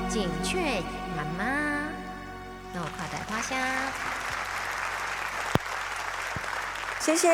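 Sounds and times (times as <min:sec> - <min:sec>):
speech: 0:00.1 - 0:01.9, 0:02.7 - 0:04.3, 0:07.0 - 0:07.3
audience applause after a Hokkien-language song: 0:02.9 - 0:07.3.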